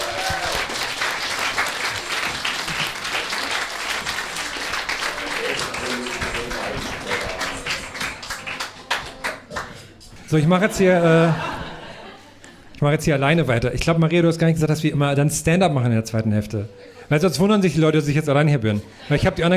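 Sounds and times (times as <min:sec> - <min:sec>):
audience applause: 0:00.0 - 0:09.8
speech: 0:10.3 - 0:11.5, 0:12.8 - 0:19.5
laughter: 0:10.6 - 0:12.8.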